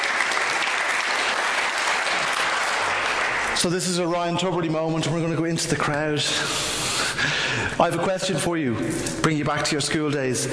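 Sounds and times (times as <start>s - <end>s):
audience applauding: 0.0s - 4.1s
speech: 3.6s - 10.5s.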